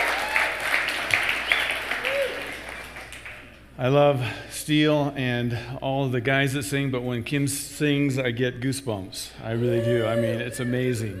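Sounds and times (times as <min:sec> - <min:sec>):
audience clapping for the band at a church service: 0:00.0 - 0:03.6
whistles: 0:01.4 - 0:02.0
speech: 0:03.8 - 0:11.1.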